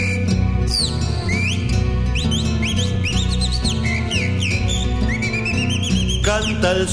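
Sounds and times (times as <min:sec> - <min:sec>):
low instrumental music: 0:00.0 - 0:06.9
mockingbird whistling song: 0:00.0 - 0:06.9.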